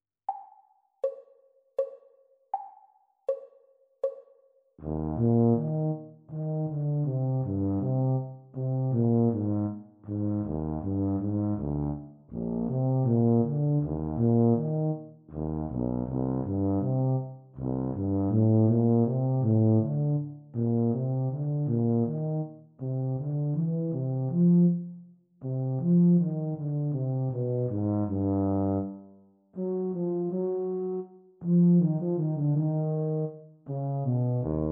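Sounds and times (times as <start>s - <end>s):
E-flat tuba duet: 4.8s - 34.6s.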